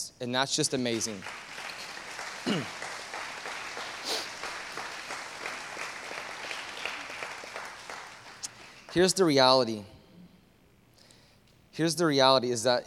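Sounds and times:
speech: 0.0 - 1.4, 2.4 - 2.9, 9.0 - 9.9, 11.8 - 12.8
audience clapping: 0.6 - 9.5.

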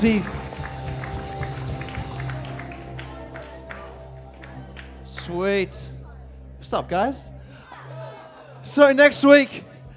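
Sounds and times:
speech: 0.0 - 0.4, 5.3 - 6.0, 6.6 - 7.4, 8.6 - 9.7
audience clapping: 0.0 - 5.4.

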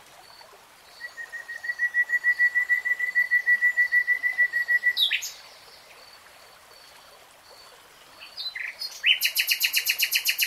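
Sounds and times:
nightingale singing: 1.0 - 5.4, 8.2 - 10.4.

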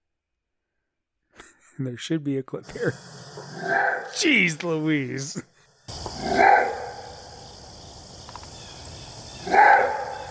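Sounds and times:
speech: 1.8 - 5.5
deep jowly dog bark: 6.2 - 7.1, 9.4 - 10.2.

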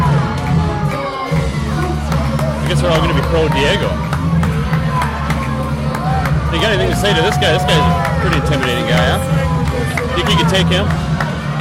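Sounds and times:
crowd booing a competitor: 0.0 - 11.6
speech: 2.8 - 4.1, 6.5 - 11.0.

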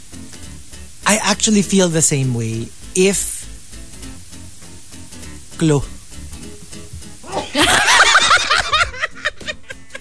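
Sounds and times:
speech: 1.1 - 3.4, 5.6 - 6.0
person sneezing: 7.2 - 7.6
laughter: 7.3 - 9.9.

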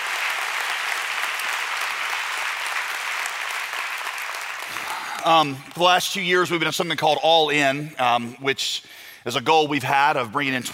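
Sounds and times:
crowd applauding: 0.0 - 6.0
speech: 5.2 - 10.7.

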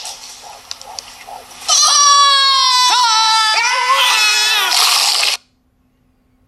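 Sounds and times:
screaming in a TV commercial: 1.7 - 5.4.

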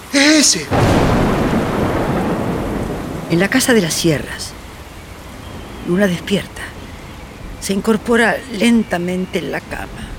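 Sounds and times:
steady heavy rain: 0.0 - 10.1
speech: 0.4 - 1.6, 3.3 - 4.6, 5.9 - 6.7, 7.6 - 10.1
deep loud thunder rumbling: 0.7 - 8.4.

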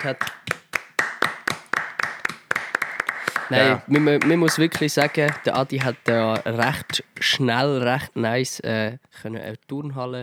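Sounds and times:
speech: 0.0 - 0.4, 3.5 - 10.2
small group applauding: 0.0 - 7.6.

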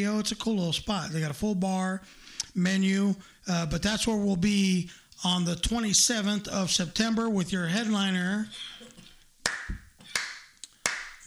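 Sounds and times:
speech: 0.0 - 8.9
hand clapping: 8.9 - 11.2.

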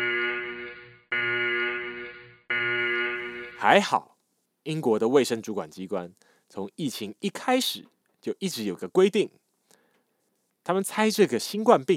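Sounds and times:
loud buzzing alarm ringing: 0.0 - 3.6
speech: 3.6 - 9.4, 10.6 - 11.9.

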